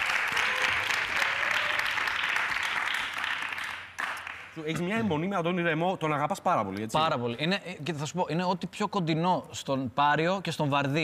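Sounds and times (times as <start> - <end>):
audience applause: 0.0 - 4.6
speech: 4.6 - 11.0.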